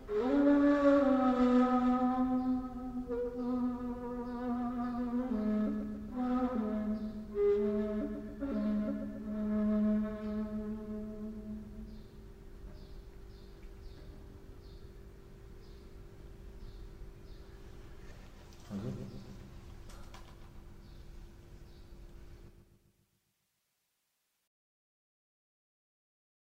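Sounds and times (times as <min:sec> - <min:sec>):
ney flute taksim improvisation: 0:00.0 - 0:12.1.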